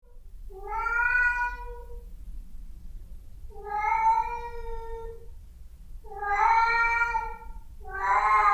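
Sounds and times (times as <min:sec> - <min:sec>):
domestic cat meowing long drawn-out harmonic meows: 0:00.5 - 0:02.0, 0:03.6 - 0:05.2, 0:06.1 - 0:08.5.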